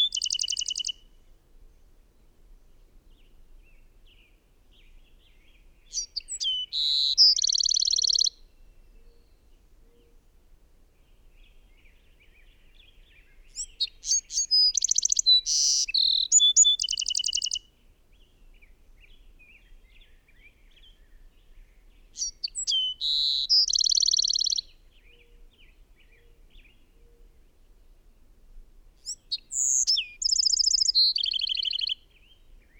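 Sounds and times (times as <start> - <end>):
bird singing trills: 0.0 - 1.0, 5.9 - 10.2, 13.4 - 17.7, 22.2 - 27.2, 29.0 - 32.7.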